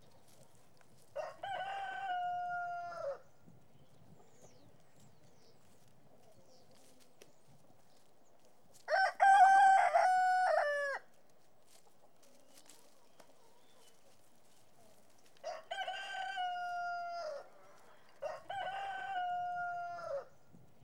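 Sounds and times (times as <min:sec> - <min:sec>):
chicken crowing: 0:01.2 - 0:03.2, 0:08.9 - 0:11.0, 0:15.4 - 0:17.5, 0:18.2 - 0:20.3.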